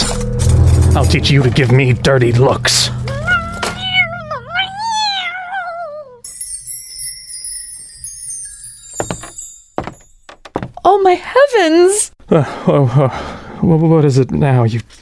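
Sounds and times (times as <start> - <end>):
speech: 1.0 - 3.0, 11.0 - 15.0
cat yowling and hissing in pain: 3.3 - 6.2.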